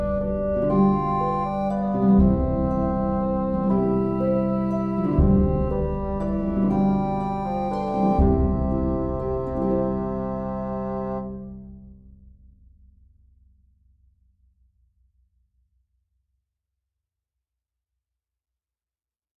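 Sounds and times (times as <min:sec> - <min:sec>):
mini bassoon track with melody: 0:00.0 - 0:11.9.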